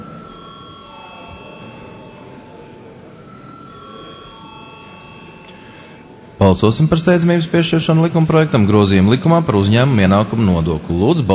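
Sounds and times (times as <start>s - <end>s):
parliament chamber bell ringing: 0.0s - 8.6s
speech: 6.4s - 11.3s.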